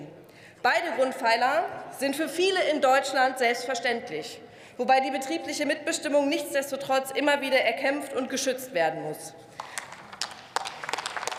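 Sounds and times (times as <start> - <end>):
speech: 0.6 - 9.7
parliamentary applause: 9.6 - 11.3.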